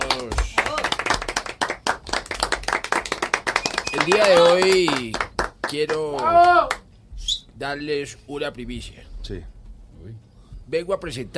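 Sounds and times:
ovation in Cartagena: 0:00.0 - 0:06.8
speech: 0:03.9 - 0:06.8, 0:07.6 - 0:11.3.

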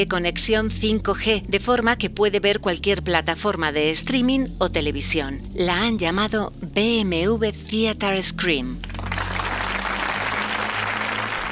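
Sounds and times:
speech: 0:00.0 - 0:09.0
applause sound effect: 0:08.8 - 0:11.4.

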